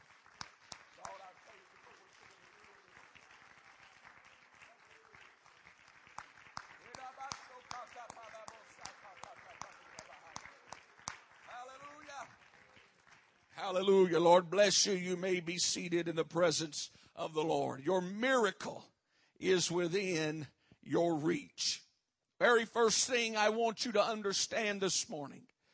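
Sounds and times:
audience clapping hands in praise: 0.0s - 16.2s
speech: 13.7s - 21.8s, 22.4s - 25.5s.

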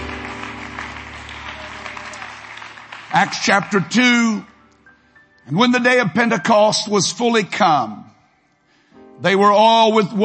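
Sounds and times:
audience clapping: 0.0s - 4.5s
speech: 3.1s - 4.5s, 5.5s - 8.1s, 9.2s - 10.2s.

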